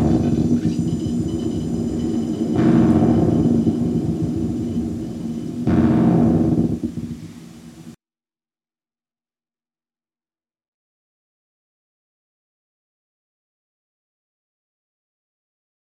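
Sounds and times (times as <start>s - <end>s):
soundscape: 0.0s - 8.0s.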